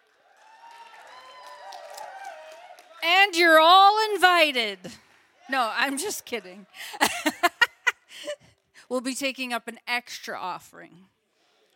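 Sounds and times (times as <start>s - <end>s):
audience clapping: 0.0s - 6.9s
high whooping cheers: 0.1s - 3.0s
speech: 3.3s - 7.5s, 8.9s - 11.2s
laughter: 5.8s - 8.4s.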